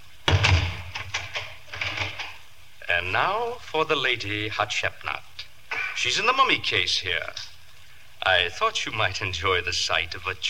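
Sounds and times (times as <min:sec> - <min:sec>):
door closing thud: 0:00.2 - 0:02.3
door lock clicking and rattling: 0:00.3 - 0:02.4
speech: 0:03.0 - 0:05.3, 0:06.0 - 0:07.5, 0:08.2 - 0:10.4.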